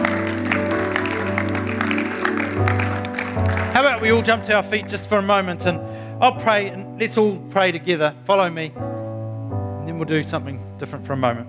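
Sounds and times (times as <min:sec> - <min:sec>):
crowd cheering and applause: 0:00.0 - 0:04.4
speech: 0:04.0 - 0:08.9, 0:09.9 - 0:11.4.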